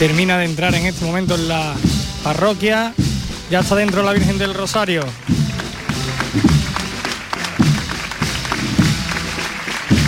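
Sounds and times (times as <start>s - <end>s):
crowd applauding: 0.0s - 0.5s, 3.3s - 10.0s
speech: 0.0s - 5.4s, 6.3s - 6.6s.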